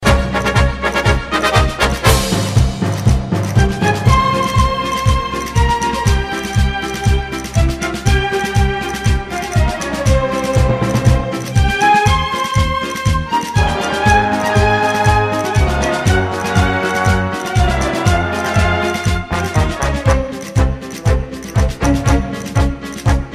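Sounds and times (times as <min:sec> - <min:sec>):
latin ringtone: 0:00.2 - 0:23.3.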